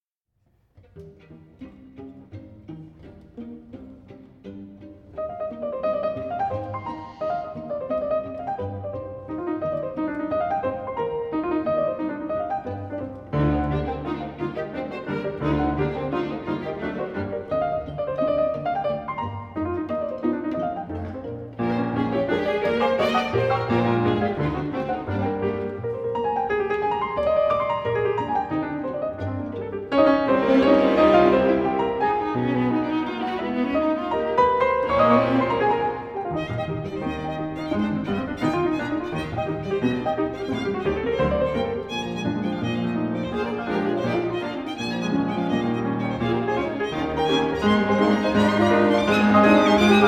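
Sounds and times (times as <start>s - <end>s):
piano: 0.7s - 50.0s.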